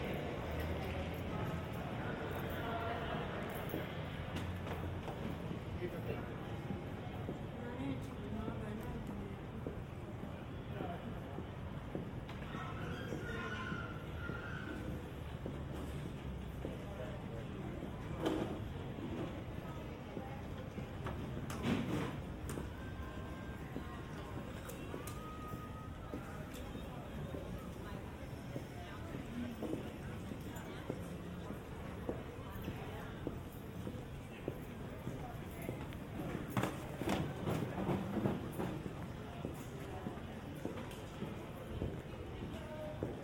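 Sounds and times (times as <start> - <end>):
murmur of voices in Philly airport hall: 0.0 - 43.2
brief tone: 22.6 - 23.8, 25.0 - 26.9.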